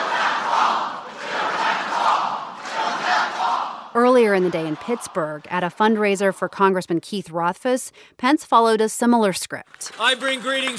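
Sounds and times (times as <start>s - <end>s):
crowd chanting a slogan: 0.0s - 6.3s
speech: 4.2s - 10.7s.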